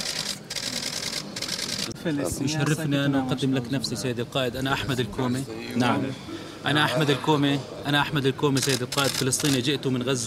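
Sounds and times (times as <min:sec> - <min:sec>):
camera clicks while taking a photo: 0:00.0 - 0:02.0, 0:08.6 - 0:09.6
speech: 0:02.0 - 0:10.2.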